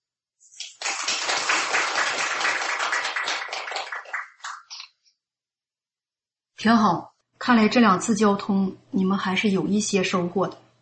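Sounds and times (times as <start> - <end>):
audience applause: 0.6 - 4.8
speech: 6.6 - 10.6.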